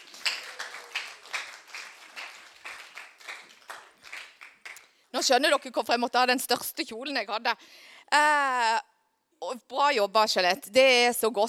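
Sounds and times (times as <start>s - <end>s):
audience applause: 0.0s - 4.8s
speech: 5.2s - 11.4s.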